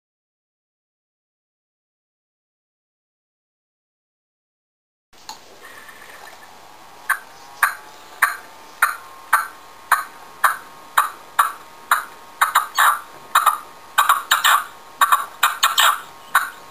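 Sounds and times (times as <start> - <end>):
partridge song: 7.1 - 16.6.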